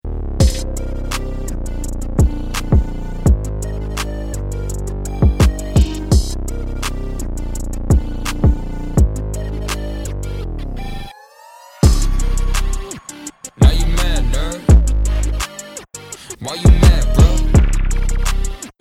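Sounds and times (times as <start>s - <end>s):
action music: 0.1s - 18.7s.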